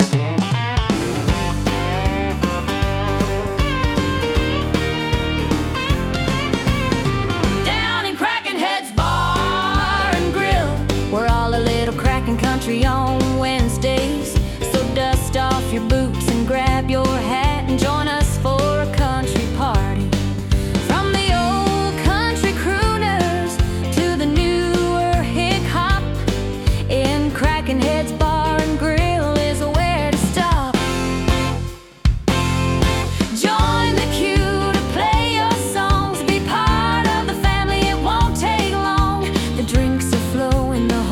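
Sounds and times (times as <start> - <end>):
country music: 0.0 - 41.1.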